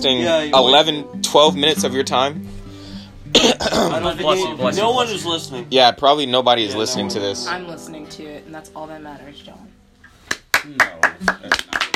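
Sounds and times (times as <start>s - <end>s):
speech: 0.0s - 2.5s, 3.3s - 9.7s, 10.6s - 11.6s
hand clapping: 10.0s - 11.9s.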